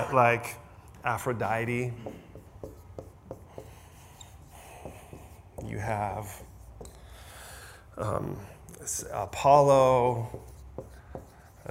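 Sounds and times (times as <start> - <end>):
speech: 0.0 - 2.3, 5.7 - 6.5, 8.0 - 10.5
pen strokes writing names down by hand: 2.0 - 7.1, 10.0 - 11.6.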